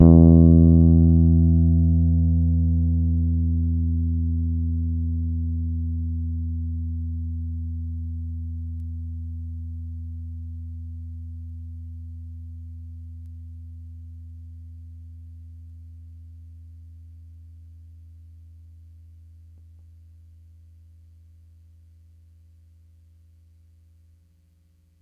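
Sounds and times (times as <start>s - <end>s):
Pedulla Thunderbass bass guitar note D sharp E3 played hard: 0.0s - 12.1s.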